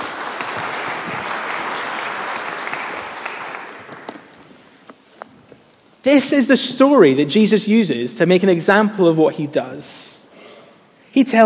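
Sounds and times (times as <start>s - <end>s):
applause: 0.0s - 4.4s
speech: 6.0s - 10.2s, 11.2s - 11.4s.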